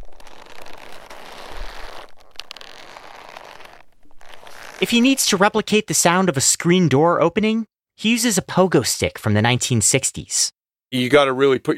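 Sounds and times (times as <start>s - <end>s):
leather creak from old ammo pouch: 0.0s - 5.2s
speech: 4.8s - 11.7s.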